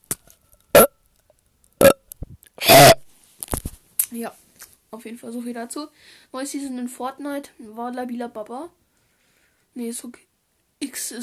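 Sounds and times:
loud rumbling burp: 0:01.8 - 0:02.0, 0:02.6 - 0:03.0
small gulping sounds: 0:01.8 - 0:03.0
speech: 0:04.2 - 0:08.8, 0:09.8 - 0:11.2.

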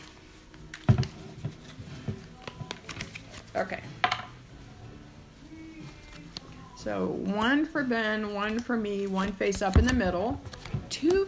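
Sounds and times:
playing cards being shuffled by hand: 0:00.0 - 0:04.2, 0:05.7 - 0:06.7, 0:08.3 - 0:11.2
speech: 0:03.6 - 0:04.0, 0:06.8 - 0:11.2.

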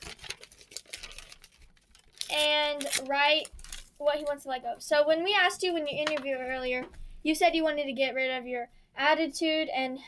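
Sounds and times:
small piece of paper torn off by hand: 0:00.0 - 0:03.9
speech: 0:02.3 - 0:10.0.

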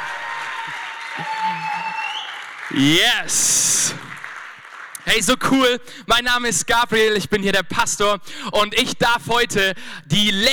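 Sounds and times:
audience applause: 0:00.0 - 0:05.6
speech: 0:00.7 - 0:01.7, 0:02.7 - 0:04.1, 0:05.1 - 0:10.5.

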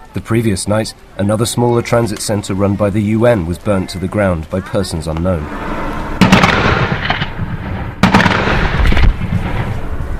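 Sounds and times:
speech: 0:00.2 - 0:05.8
live rounds fired in army military drills on the coast: 0:06.2 - 0:09.8.

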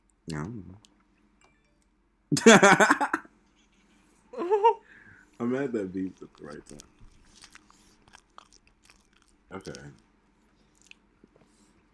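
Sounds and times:
speech: 0:00.3 - 0:00.9, 0:02.3 - 0:03.3, 0:04.4 - 0:04.8, 0:05.4 - 0:06.9, 0:09.5 - 0:10.0
laughter: 0:02.4 - 0:03.2
crunchy chewing and biting: 0:06.0 - 0:11.7.

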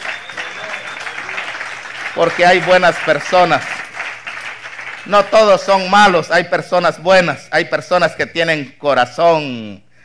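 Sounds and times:
applause: 0:00.0 - 0:05.9
speech: 0:02.2 - 0:03.8, 0:05.0 - 0:09.8.

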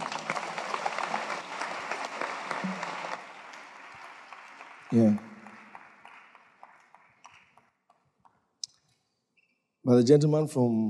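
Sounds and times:
audience applause: 0:00.0 - 0:08.1
speech: 0:04.9 - 0:05.3, 0:10.0 - 0:10.8.

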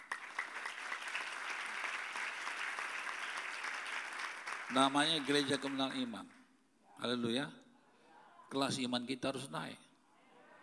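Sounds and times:
audience applauding: 0:00.0 - 0:06.1
speech: 0:04.7 - 0:06.4, 0:07.0 - 0:07.6, 0:08.5 - 0:09.8.

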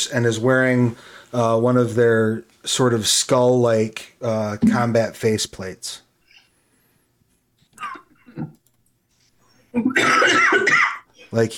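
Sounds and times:
speech: 0:00.0 - 0:06.0, 0:07.8 - 0:08.6, 0:09.8 - 0:11.5
person coughing after choking on a drink: 0:07.8 - 0:08.5, 0:09.8 - 0:11.3.

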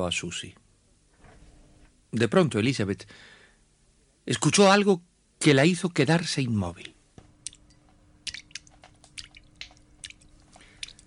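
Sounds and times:
speech: 0:00.0 - 0:00.6, 0:02.1 - 0:03.4, 0:04.2 - 0:07.0
low steady hum: 0:00.0 - 0:11.0
water drops falling into liquid: 0:07.4 - 0:11.0.

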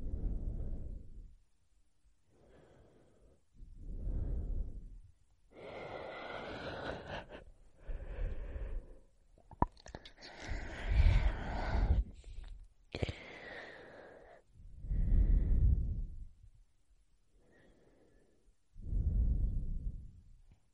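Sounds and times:
slow deep mouth breathing: 0:00.0 - 0:01.3, 0:02.4 - 0:16.4, 0:18.8 - 0:20.3.

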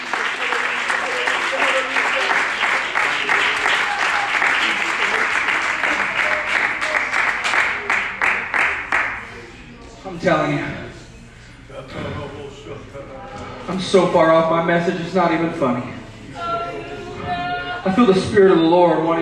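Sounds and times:
audience clapping hands: 0:00.0 - 0:09.4
speech: 0:10.2 - 0:10.8, 0:13.8 - 0:16.0, 0:17.8 - 0:19.1.

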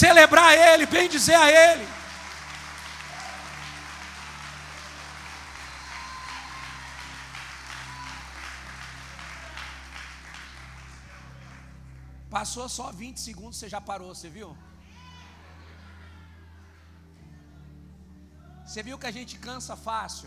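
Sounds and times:
speech: 0:00.0 - 0:02.1, 0:12.4 - 0:14.7, 0:18.7 - 0:20.2
crowd applauding: 0:00.0 - 0:12.1.

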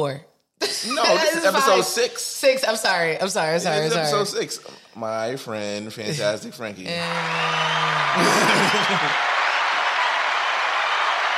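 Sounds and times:
speech: 0:00.0 - 0:09.3
laughter: 0:06.0 - 0:09.4
applause: 0:07.0 - 0:11.3.

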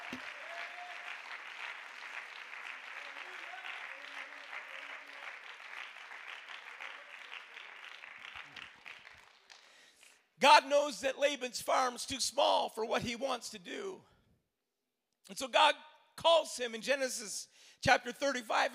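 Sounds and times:
crowd clapping hands: 0:00.0 - 0:10.3
speech: 0:00.1 - 0:00.4, 0:10.4 - 0:14.1, 0:15.3 - 0:18.7.

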